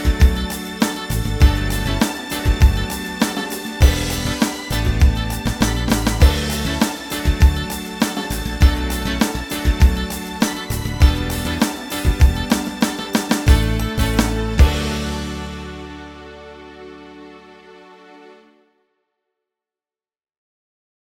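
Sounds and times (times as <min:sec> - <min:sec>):
Philly disco music: 0:00.0 - 0:16.9.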